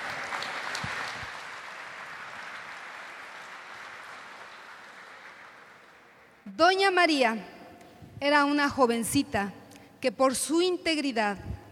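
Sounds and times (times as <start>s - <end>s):
audience applause: 0.0s - 6.3s
speech: 6.5s - 7.5s, 8.2s - 11.5s.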